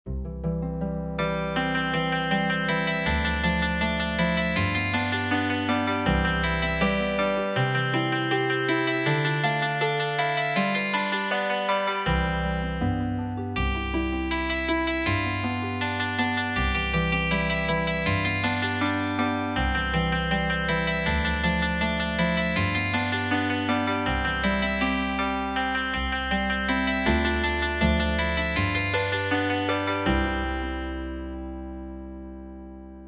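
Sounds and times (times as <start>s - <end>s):
healing harp music: 0.1s - 33.0s.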